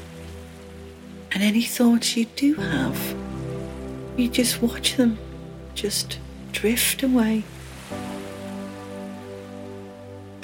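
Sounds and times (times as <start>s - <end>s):
gentle ocean waves: 0.0s - 10.4s
speech: 1.3s - 3.2s, 4.2s - 8.0s.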